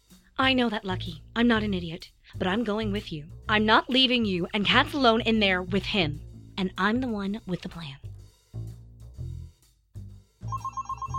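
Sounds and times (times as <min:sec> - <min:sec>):
speech: 0:00.4 - 0:08.1
phone ringing: 0:10.5 - 0:11.1.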